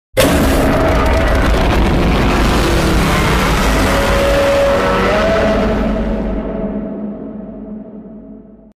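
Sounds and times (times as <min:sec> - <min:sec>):
roar: 0:00.2 - 0:07.2.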